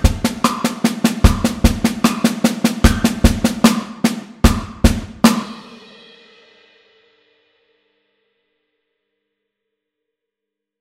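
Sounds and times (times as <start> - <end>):
snare drum: 0.0 - 6.1.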